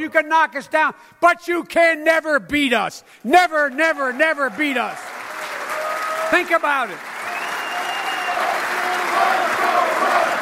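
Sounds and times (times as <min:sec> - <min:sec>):
speech: 0:00.0 - 0:05.2, 0:06.3 - 0:07.1
crowd cheering and applauding: 0:03.6 - 0:10.4.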